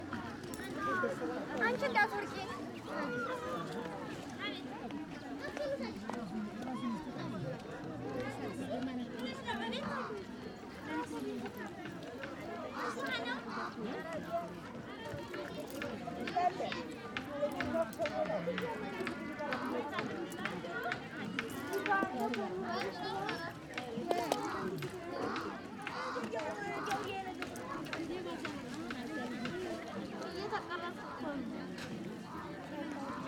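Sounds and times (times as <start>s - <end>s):
large outdoor market crowd voices in Ethiopia: 0.0s - 33.2s.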